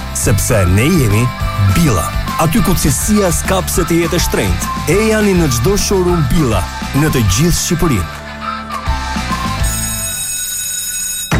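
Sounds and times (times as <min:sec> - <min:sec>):
speech: 0:00.2 - 0:08.2
electric school bell ringing: 0:09.5 - 0:11.3.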